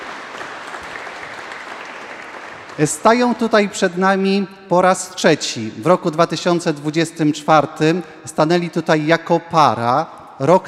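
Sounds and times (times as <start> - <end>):
audience applause welcoming a newly married couple: 0.0 - 2.9
speech: 2.8 - 10.6.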